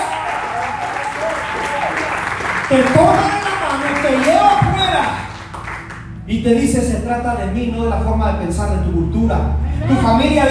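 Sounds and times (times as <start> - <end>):
audience applauding: 0.0 - 6.1
speech: 2.7 - 3.4, 4.0 - 5.3, 6.3 - 10.4.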